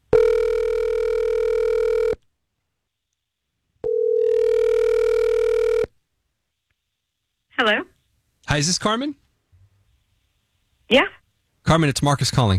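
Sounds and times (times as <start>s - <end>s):
outgoing phone call buzzy ringback tones: 0.1s - 2.2s, 3.8s - 5.9s
speech: 7.6s - 7.9s, 8.5s - 9.2s, 10.9s - 12.5s.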